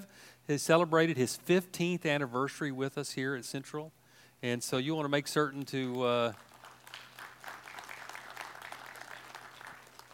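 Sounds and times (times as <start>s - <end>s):
speech: 0.5s - 6.5s
thin scattered applause from a small gathering: 5.9s - 10.1s.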